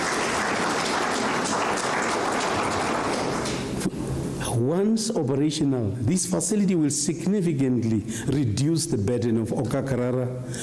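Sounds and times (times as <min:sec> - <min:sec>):
audience applause: 0:00.0 - 0:03.8
speech: 0:04.6 - 0:10.6.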